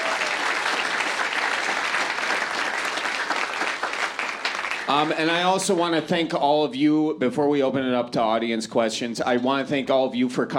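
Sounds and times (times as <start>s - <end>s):
audience applause: 0.0s - 5.9s
speech: 4.9s - 10.5s.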